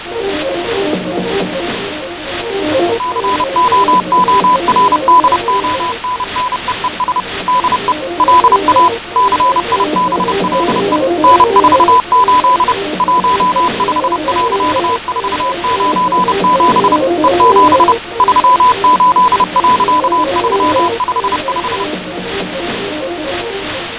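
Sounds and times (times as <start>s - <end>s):
morse code beeps: 0.3s - 23.9s.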